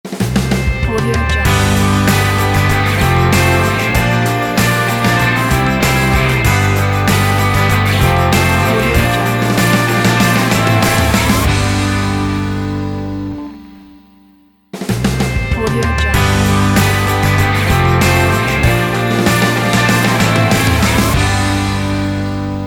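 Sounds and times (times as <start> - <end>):
inspiring rock ident music: 0.1 - 13.7, 14.8 - 22.6.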